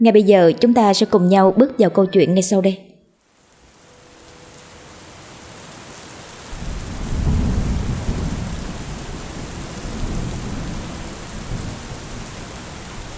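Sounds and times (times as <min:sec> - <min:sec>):
speech: 0:00.0 - 0:02.9
heavy rain pouring down in a downpour: 0:03.2 - 0:13.1.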